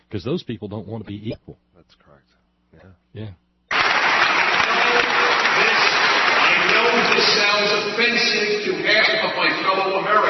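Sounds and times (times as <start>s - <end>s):
speech: 0.1s - 3.4s, 6.9s - 10.2s
audience applause: 3.7s - 8.7s.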